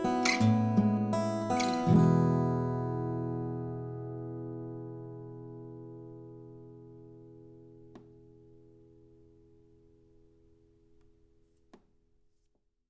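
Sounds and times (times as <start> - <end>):
alternate guitar: 0.0 - 11.2.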